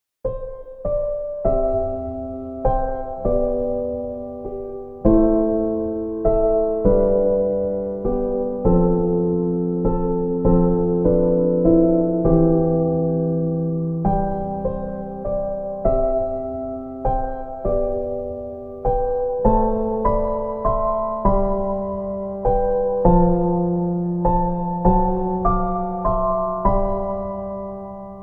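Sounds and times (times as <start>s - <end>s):
piano: 0.2s - 28.2s.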